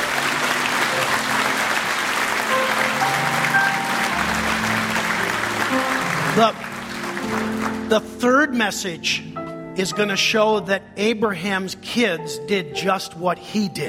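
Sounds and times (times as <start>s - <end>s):
audience clapping: 0.0s - 8.2s
speech: 6.4s - 6.6s, 7.4s - 13.8s.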